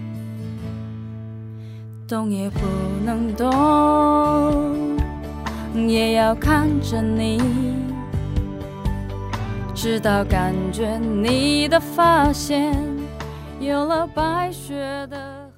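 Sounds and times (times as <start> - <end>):
Chinese woman singing a song: 2.0 - 8.2, 9.7 - 15.5.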